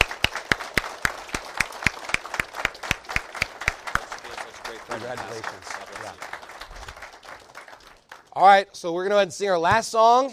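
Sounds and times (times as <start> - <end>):
audience applause: 0.0 - 8.5
speech: 5.1 - 6.3, 8.4 - 10.3.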